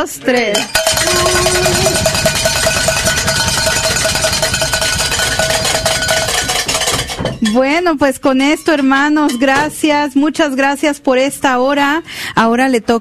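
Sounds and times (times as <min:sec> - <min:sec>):
speech: 0:00.0 - 0:02.2, 0:07.4 - 0:12.9
many small hand bells ringing: 0:00.4 - 0:07.2.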